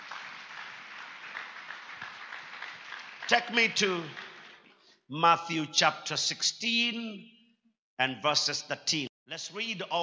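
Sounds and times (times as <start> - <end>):
audience clapping hands: 0.0 - 4.9
speech: 3.3 - 4.2, 5.1 - 7.4, 8.0 - 10.0.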